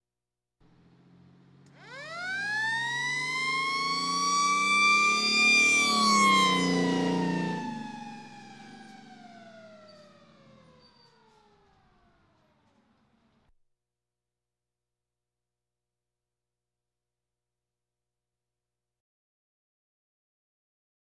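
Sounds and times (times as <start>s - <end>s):
police sirens: 1.7s - 13.3s.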